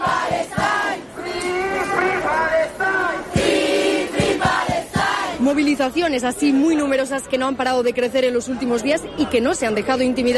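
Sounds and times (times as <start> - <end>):
large protest crowd chanting in unison in the street: 0.0 - 5.5
speech: 5.5 - 10.3.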